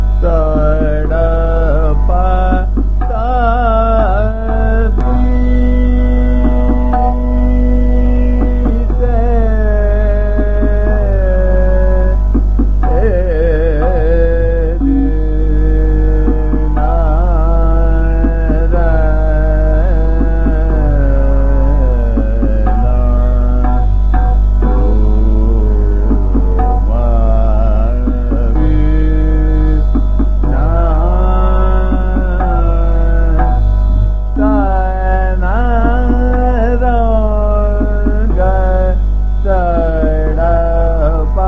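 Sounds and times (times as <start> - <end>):
Sadra vocal music in Jhaptal at medium tempo: 0.2 - 41.4.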